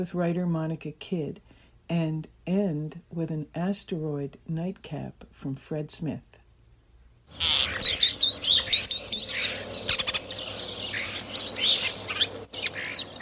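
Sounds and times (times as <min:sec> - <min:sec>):
speech: 0:00.0 - 0:06.3, 0:07.3 - 0:07.8
European starling calls: 0:07.3 - 0:13.2.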